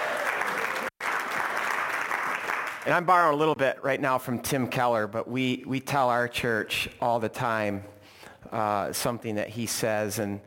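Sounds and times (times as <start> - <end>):
audience clapping: 0.0 - 3.5
speech: 2.8 - 10.4.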